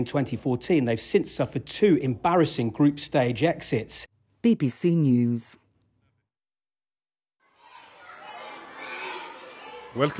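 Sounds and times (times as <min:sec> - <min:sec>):
speech: 0:00.0 - 0:05.6, 0:10.0 - 0:10.1
schoolboys playing in school corridors in Khartoum, Sudan: 0:07.4 - 0:10.1.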